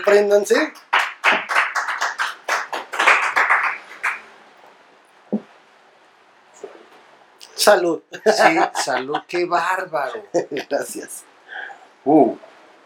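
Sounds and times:
speech: 0.0 - 1.4, 7.6 - 11.3, 12.0 - 12.5
audience applause: 0.8 - 4.2
laughter: 8.2 - 11.1.

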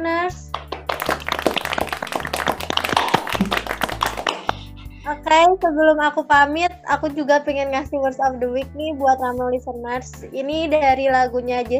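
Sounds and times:
hand clapping: 0.5 - 4.8
speech: 5.3 - 11.7.

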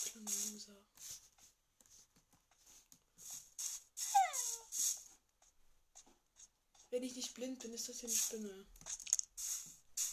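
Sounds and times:
dog whimpering in a video game: 4.1 - 4.7
speech: 7.0 - 9.0.

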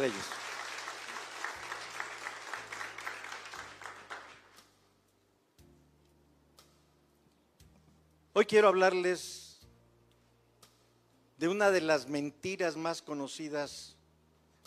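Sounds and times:
speech: 0.0 - 0.4, 8.4 - 9.4, 11.4 - 14.0
audience applause: 0.0 - 4.5.

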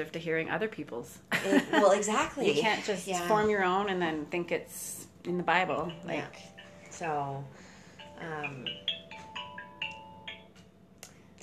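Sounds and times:
speech: 0.0 - 7.6, 8.2 - 8.9
phone ringtone of an incoming call: 5.4 - 10.7.

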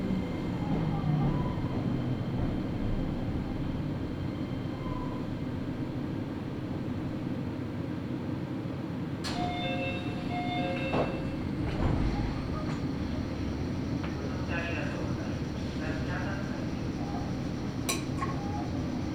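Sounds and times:
Nagoya Railway local train rattling clatter: 0.0 - 19.1
sharp clicks and clanks: 17.9 - 18.4.

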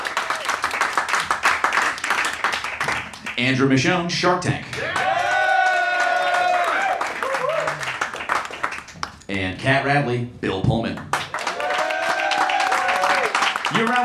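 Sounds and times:
audience applause: 0.0 - 3.4, 4.7 - 9.2, 11.1 - 14.0
speech: 3.4 - 5.0, 9.3 - 11.2, 13.7 - 14.0.

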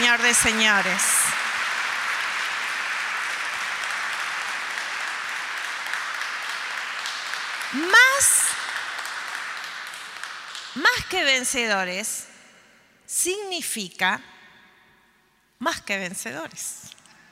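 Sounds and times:
audience applause: 0.0 - 10.9
speech: 0.1 - 1.3, 7.7 - 8.4, 10.8 - 12.3, 13.1 - 14.3, 15.6 - 17.0.

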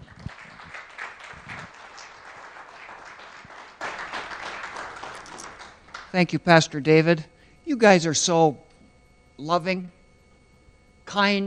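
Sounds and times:
audience applause: 0.0 - 6.1
speech: 6.1 - 8.6, 9.4 - 10.0, 11.1 - 11.4.

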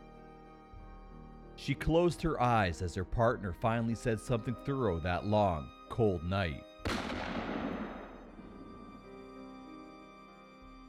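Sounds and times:
speech: 1.6 - 6.7
gunshot from a .357 Magnum revolver: 6.8 - 9.1.

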